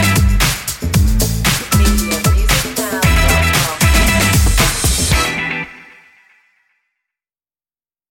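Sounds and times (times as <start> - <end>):
instrumental music without vocals: 0.0 - 6.5.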